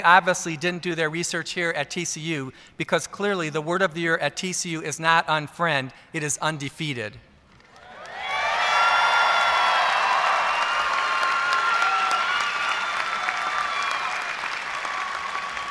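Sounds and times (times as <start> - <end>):
speech: 0.0 - 7.3
audience applause: 7.8 - 15.6
cheers and whoops: 7.8 - 15.6.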